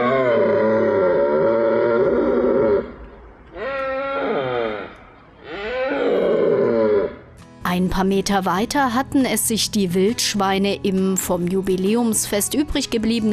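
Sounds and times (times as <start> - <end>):
red deer stags roaring during rut: 0.0 - 7.4
speech: 7.8 - 13.3.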